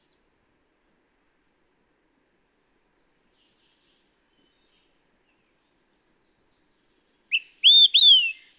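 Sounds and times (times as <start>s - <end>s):
Olive-sided Flycatcher calling: 7.3s - 8.4s.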